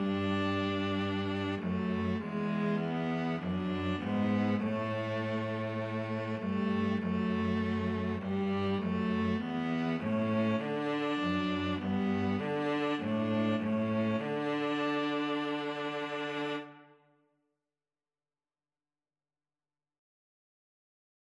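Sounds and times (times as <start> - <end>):
string trio playing: 0.0 - 16.8.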